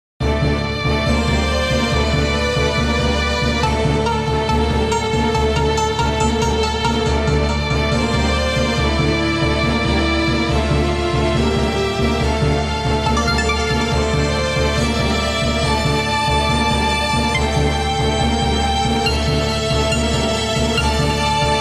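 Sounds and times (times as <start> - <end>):
sci-fi theme music: 0.4 - 21.5.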